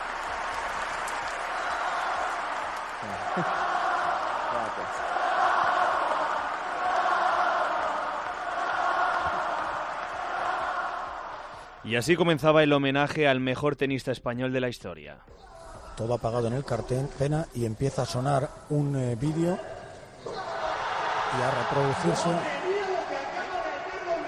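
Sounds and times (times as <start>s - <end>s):
arena crowd ovation at the Martín Carpena in Málaga: 0.0s - 12.2s, 18.3s - 24.2s
speech: 3.0s - 3.6s, 4.6s - 5.1s, 11.9s - 20.4s, 21.3s - 22.6s.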